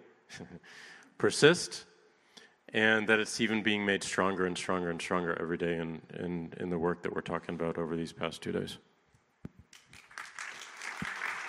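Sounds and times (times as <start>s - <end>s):
speech: 0.3s - 1.9s, 2.7s - 8.9s
audience applause at a multi-day talk event: 9.7s - 11.4s.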